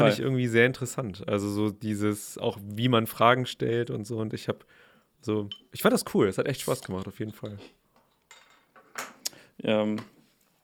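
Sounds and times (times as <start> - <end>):
speech: 0.0 - 7.8, 9.0 - 10.2
glasses clinking in a toast: 7.3 - 9.1.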